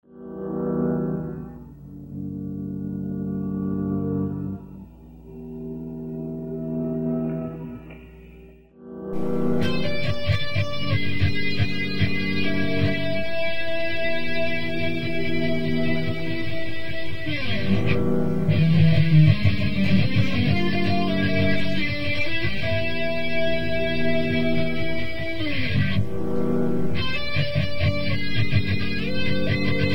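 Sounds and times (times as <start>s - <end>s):
electric guitar at midnight mass: 0.1s - 29.9s.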